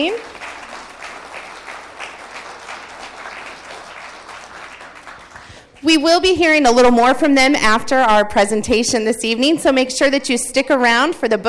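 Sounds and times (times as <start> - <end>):
speech: 0.0 - 0.4, 5.8 - 11.4
audience applause for musicians: 0.0 - 5.8.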